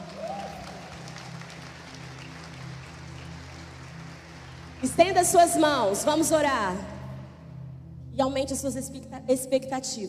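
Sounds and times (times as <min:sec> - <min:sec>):
audience applauding: 0:00.0 - 0:05.2
speech: 0:04.8 - 0:06.9, 0:08.2 - 0:10.0.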